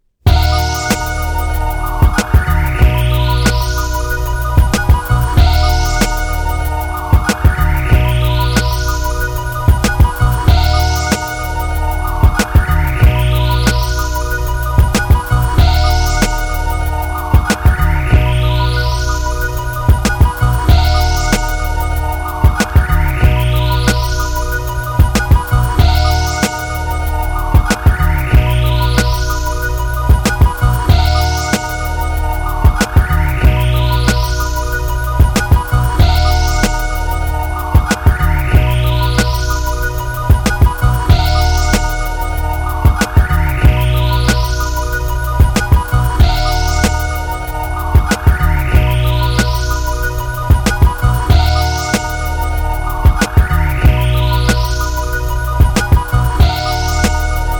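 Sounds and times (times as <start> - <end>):
instrumental intro music: 0.3 - 57.5.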